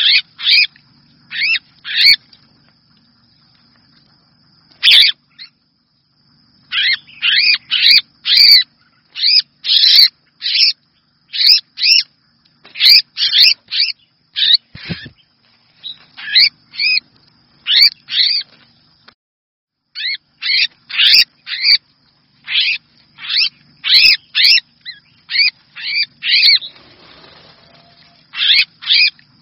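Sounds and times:
red-whiskered bulbul distress call: 0.0 - 0.7, 1.3 - 2.2, 4.8 - 5.6, 6.6 - 12.1, 12.7 - 17.0, 17.6 - 18.5, 20.0 - 21.8, 22.4 - 29.2.

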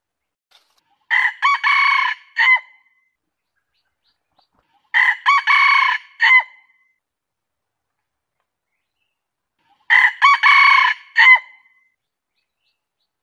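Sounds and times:
junglefowl crowing: 1.1 - 2.7, 4.9 - 6.6, 9.9 - 11.6.

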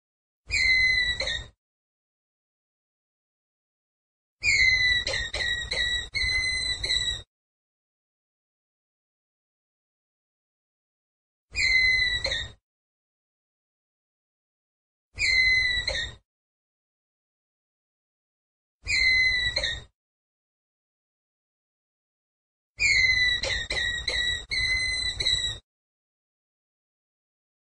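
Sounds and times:
ground squirrel whistled call: 0.5 - 1.5, 4.4 - 7.2, 11.6 - 12.6, 15.2 - 16.2, 18.9 - 19.9, 22.8 - 25.6.

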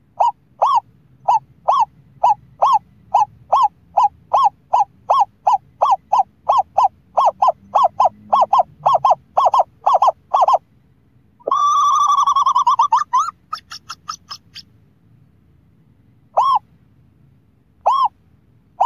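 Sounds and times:
scops owl hooting: 0.1 - 10.6, 11.4 - 14.7, 16.3 - 16.7, 17.8 - 18.2.

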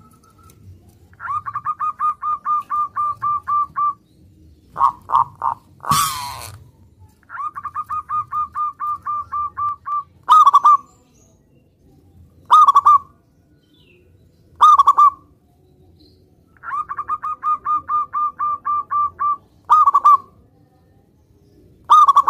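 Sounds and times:
zebra dove cooing: 0.0 - 4.0, 4.7 - 6.7, 7.3 - 10.9, 12.5 - 13.1, 14.6 - 15.3, 16.6 - 20.4, 21.8 - 22.2.

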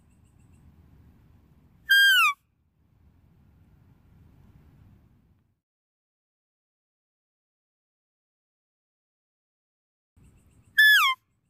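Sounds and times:
deer call squeal: 1.9 - 2.4, 10.8 - 11.2.

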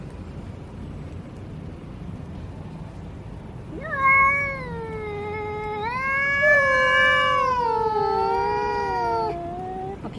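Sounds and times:
domestic cat meowing: 3.7 - 10.0.

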